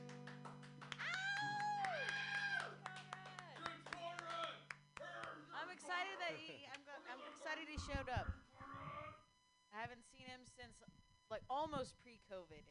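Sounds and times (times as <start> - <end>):
people clapping: 0.0 - 6.9
speech: 6.2 - 8.4, 9.8 - 12.6.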